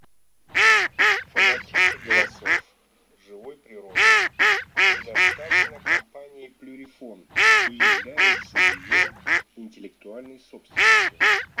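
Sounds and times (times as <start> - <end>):
mallard: 0.5 - 2.6, 3.9 - 6.0, 7.3 - 9.4, 10.7 - 11.5.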